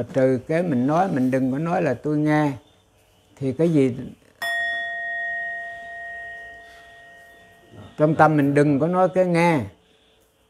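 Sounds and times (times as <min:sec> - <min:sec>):
speech: 0:00.0 - 0:02.6, 0:03.4 - 0:04.2, 0:08.0 - 0:09.8
meditation bell being struck: 0:04.4 - 0:08.4.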